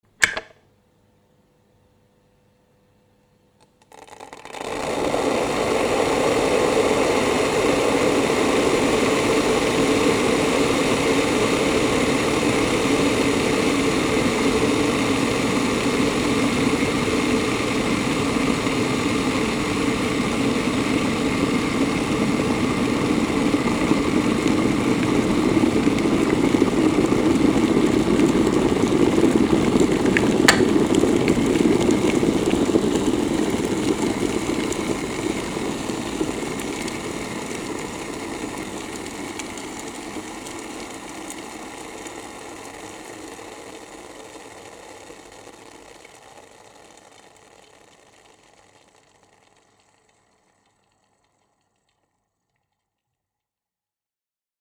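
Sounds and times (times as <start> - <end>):
electric kettle steaming: 0.2 - 0.5, 3.6 - 52.0.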